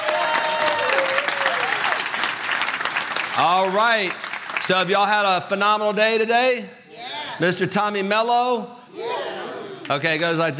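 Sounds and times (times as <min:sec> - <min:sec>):
audience hand clapping: 0:00.0 - 0:05.1
speech: 0:03.4 - 0:06.8, 0:07.4 - 0:08.8, 0:09.9 - 0:10.5.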